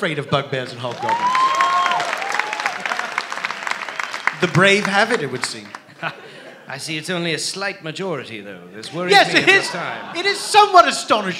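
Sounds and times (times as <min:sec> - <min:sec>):
speech: 0:00.0 - 0:01.4, 0:04.4 - 0:11.3
audience round of applause: 0:00.7 - 0:06.0
laughter: 0:02.8 - 0:06.9, 0:08.9 - 0:11.3.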